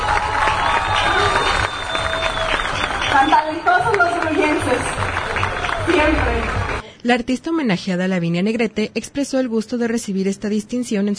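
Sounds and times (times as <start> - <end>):
audience applauding: 0.0 - 6.8
speech: 7.0 - 11.1.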